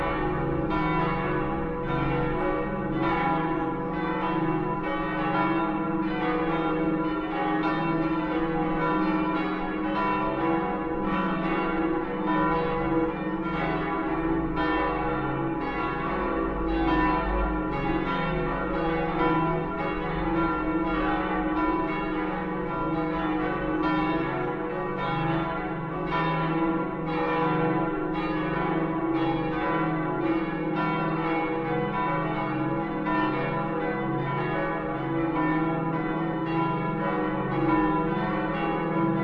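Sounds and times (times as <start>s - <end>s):
multi-voice bell peal tuned C sharp E F sharp G sharp A: 0.0s - 39.2s.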